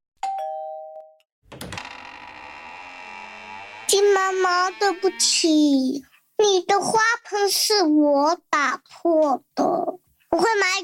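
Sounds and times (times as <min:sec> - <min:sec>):
two-note doorbell chime: 0:00.2 - 0:01.2
speech: 0:03.9 - 0:10.8.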